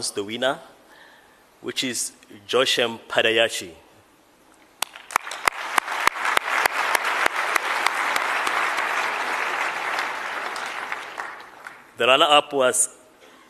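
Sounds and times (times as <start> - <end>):
speech: 0.0 - 0.8, 1.6 - 3.8, 12.0 - 13.0
audience round of applause: 4.8 - 11.9.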